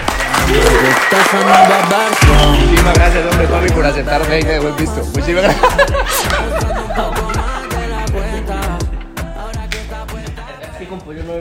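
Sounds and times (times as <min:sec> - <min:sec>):
applause: 0:00.0 - 0:02.4
speech: 0:00.5 - 0:07.4, 0:10.9 - 0:11.3
laughter: 0:05.2 - 0:08.7, 0:10.2 - 0:11.2.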